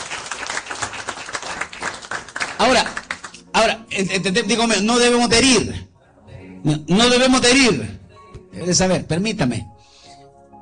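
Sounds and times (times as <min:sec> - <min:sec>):
audience applause: 0:00.0 - 0:03.5
speech: 0:02.6 - 0:03.0, 0:03.6 - 0:05.9, 0:06.6 - 0:09.7.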